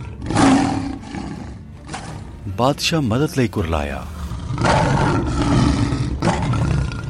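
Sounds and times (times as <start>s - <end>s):
lion roaring: 0.0s - 2.3s, 4.2s - 7.0s
speech: 2.5s - 4.7s.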